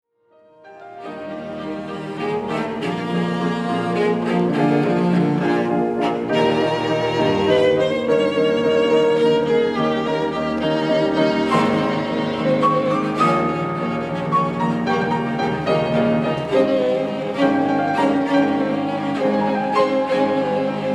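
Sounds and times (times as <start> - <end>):
piano trio playing: 0.4 - 20.9.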